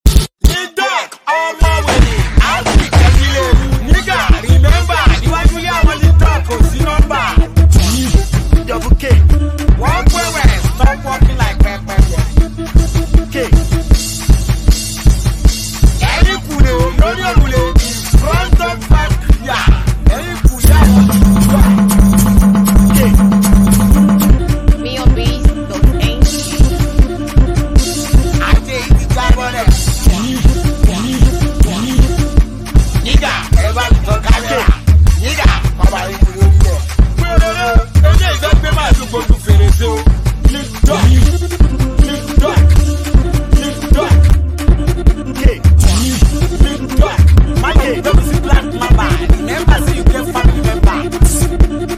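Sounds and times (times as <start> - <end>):
music beat: 0.0 - 51.9.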